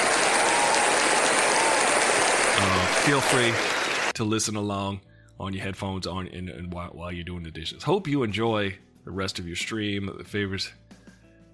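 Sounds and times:
crowd applauding: 0:00.0 - 0:04.2
speech: 0:03.0 - 0:11.0.

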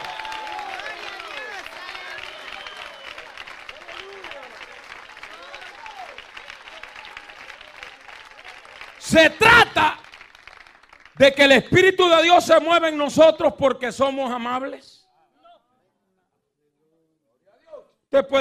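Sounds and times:
audience applause: 0:00.0 - 0:11.3
speech: 0:09.1 - 0:10.0, 0:11.2 - 0:15.0, 0:18.2 - 0:18.3.

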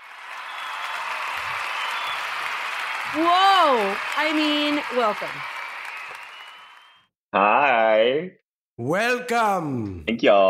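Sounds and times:
studio audience applauding to welcome a guest: 0:00.0 - 0:07.1
speech: 0:03.1 - 0:05.5, 0:07.3 - 0:10.4.

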